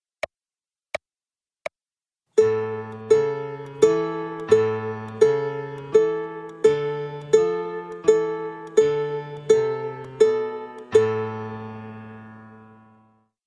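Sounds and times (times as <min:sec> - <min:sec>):
children's ukulele music: 0:02.4 - 0:13.0.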